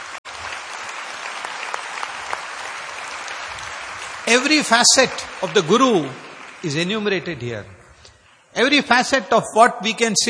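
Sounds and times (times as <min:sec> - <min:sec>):
audience applause: 0:00.0 - 0:07.8
speech: 0:04.3 - 0:07.8, 0:08.6 - 0:10.2.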